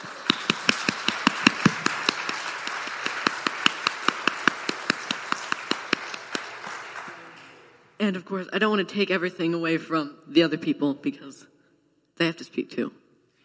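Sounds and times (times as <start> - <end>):
hands clapping: 0.0 - 7.8
speech: 8.0 - 11.5, 12.2 - 13.0.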